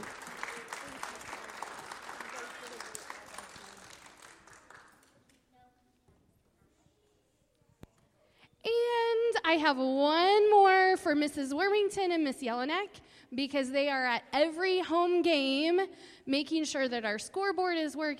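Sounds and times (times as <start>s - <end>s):
audience applause: 0.0s - 5.2s
speech: 9.5s - 18.1s.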